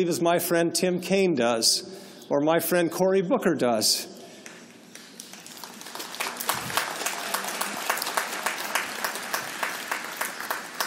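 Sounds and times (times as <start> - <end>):
speech: 0.0 - 4.2
audience applauding: 5.0 - 10.8.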